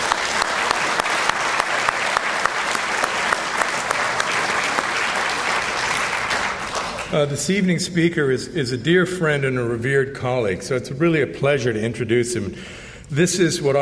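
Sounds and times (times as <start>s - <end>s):
crowd applause: 0.0s - 7.4s
speech: 7.1s - 13.8s.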